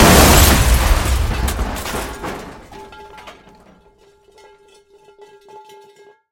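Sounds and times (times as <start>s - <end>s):
dishes breaking: 0.0s - 6.2s
metal lid rolling on the floor: 2.8s - 6.3s.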